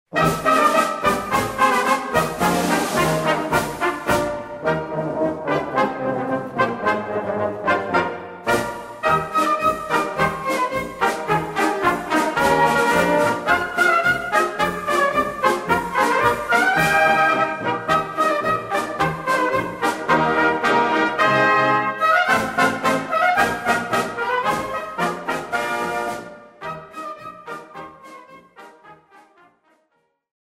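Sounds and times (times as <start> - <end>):
festive march music: 0.1 - 29.7.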